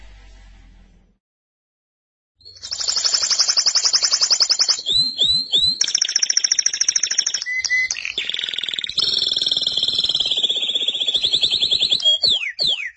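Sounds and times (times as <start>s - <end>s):
canary singing metallic rolling trills: 4.5s - 12.9s.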